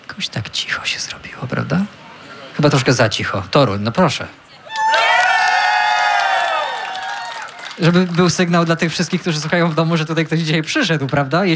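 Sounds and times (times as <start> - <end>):
speech: 0.1 - 2.0, 2.6 - 4.4, 7.8 - 11.5
whoops and shouts: 4.6 - 7.8
live audience cheering: 4.6 - 11.0.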